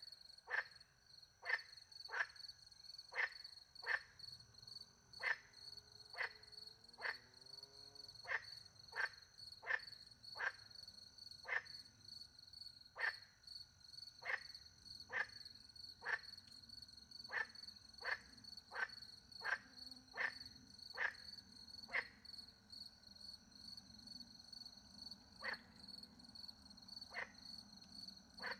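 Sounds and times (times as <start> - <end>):
crickets chirping: 0.0 - 28.5
frog croaking: 0.4 - 0.8, 1.4 - 2.4, 3.1 - 4.2, 5.2 - 5.5, 6.1 - 7.2, 8.2 - 10.7, 11.4 - 11.9, 12.9 - 13.4, 14.2 - 16.5, 17.2 - 22.2, 25.4 - 25.8, 27.0 - 27.6, 28.4 - 28.5.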